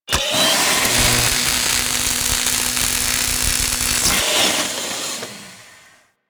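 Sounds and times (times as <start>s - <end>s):
welder working: 0.1s - 4.2s.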